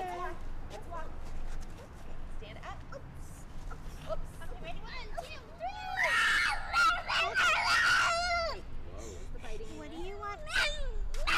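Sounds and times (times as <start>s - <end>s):
young child screaming in a tantrum: 5.6s - 8.6s, 10.4s - 11.3s.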